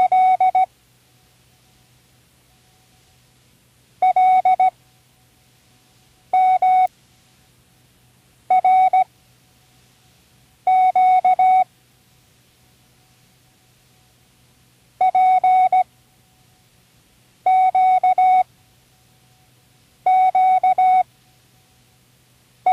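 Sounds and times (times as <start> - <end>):
morse code signal: 0.0 - 0.7, 4.0 - 4.7, 6.4 - 6.9, 8.5 - 9.1, 10.7 - 11.7, 15.0 - 15.9, 17.5 - 18.5, 20.1 - 21.0.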